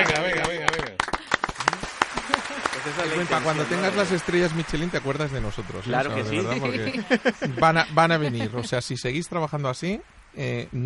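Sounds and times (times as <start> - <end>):
applause: 0.0 - 8.1
laughter: 0.0 - 9.0
speech: 2.9 - 10.8.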